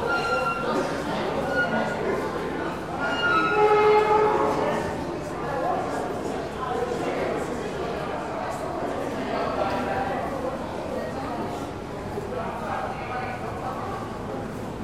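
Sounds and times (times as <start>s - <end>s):
tonal squeals: 0.0s - 2.0s, 2.9s - 4.6s
crowd murmur on Broadway Junction station platform: 0.0s - 14.8s.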